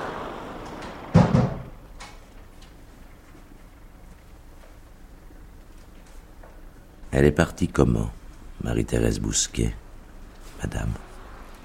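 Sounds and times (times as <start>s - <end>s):
door pulled shut in a home in a French radio drama: 0.8s - 1.8s
speech: 7.2s - 9.8s, 10.6s - 11.1s.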